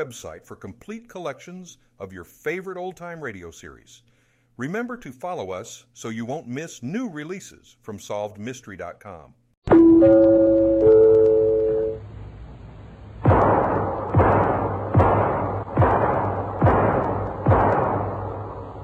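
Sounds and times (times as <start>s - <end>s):
speech: 0.0s - 9.4s, 10.0s - 10.5s
brief tonal musical note: 9.7s - 12.0s
gunshots at target practice: 13.2s - 18.8s.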